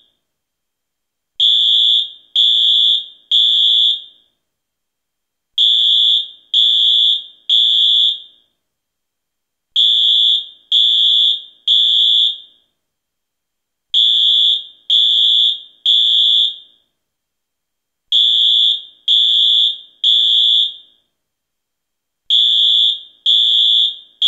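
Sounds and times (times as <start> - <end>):
fire alarm: 1.4 - 4.4, 5.6 - 8.6, 9.8 - 12.8, 14.0 - 16.9, 18.1 - 21.1, 22.3 - 24.2.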